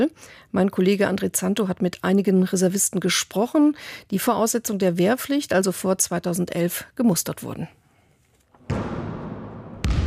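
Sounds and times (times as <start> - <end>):
speech: 0.0 - 7.8
basketball bouncing during a quick game among army reservists: 8.6 - 10.0.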